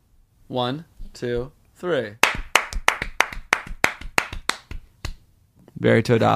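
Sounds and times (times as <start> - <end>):
speech: 0.5 - 2.3, 5.8 - 6.3
two people clapping hands: 2.2 - 5.2.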